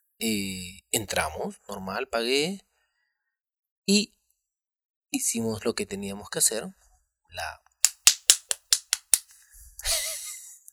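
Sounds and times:
speech: 0.2 - 2.7, 3.9 - 4.2, 5.1 - 7.6
people clapping: 7.9 - 9.3.

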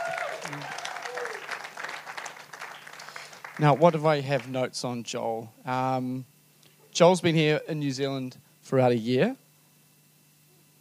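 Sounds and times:
audience applause: 0.0 - 4.6
speech: 3.6 - 6.3, 7.0 - 9.4.

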